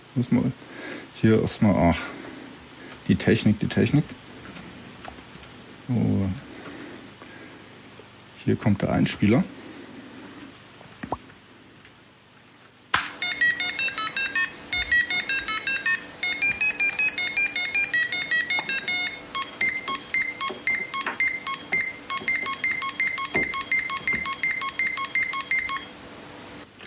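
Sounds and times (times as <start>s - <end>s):
speech: 0.2s - 2.2s, 3.1s - 4.2s, 5.9s - 6.4s, 8.5s - 9.6s
LC80 computer beeping when switched on: 13.2s - 25.9s.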